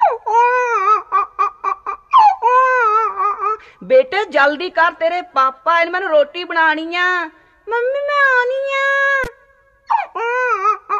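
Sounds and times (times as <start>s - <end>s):
young boy crying at home: 0.0s - 3.6s, 9.9s - 10.9s
speech: 3.9s - 9.0s.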